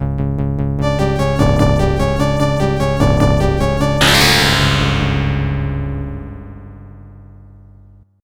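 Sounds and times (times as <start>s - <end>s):
arcade title music: 0.8s - 7.0s.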